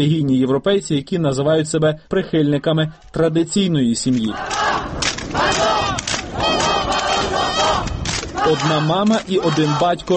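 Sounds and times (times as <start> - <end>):
speech: 0.0 - 5.8, 8.4 - 10.1
large crowd chanting a slogan in unison: 4.2 - 10.1.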